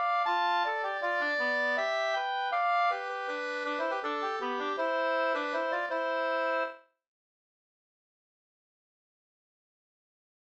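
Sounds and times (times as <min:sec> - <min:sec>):
waltz music: 0:00.0 - 0:06.8.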